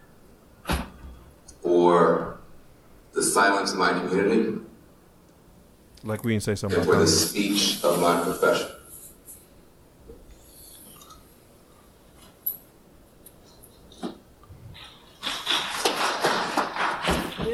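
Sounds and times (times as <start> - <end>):
speech: 3.4 - 4.7, 6.0 - 8.7
hand claps: 15.2 - 17.5.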